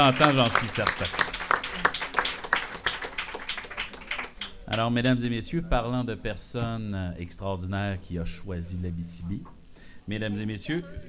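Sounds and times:
speech: 0.0s - 1.3s, 4.7s - 11.0s
crowd applauding: 0.0s - 4.9s.

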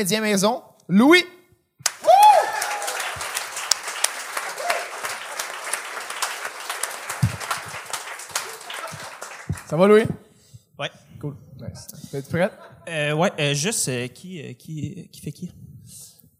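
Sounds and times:
speech: 0.0s - 1.4s, 9.7s - 10.2s, 10.8s - 16.0s
audience applause: 1.8s - 9.9s.

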